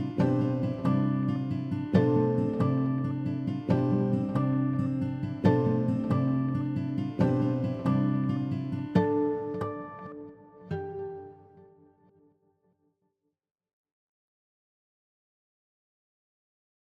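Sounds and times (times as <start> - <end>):
three acoustic guitars playing arpeggios: 0.0 - 12.2.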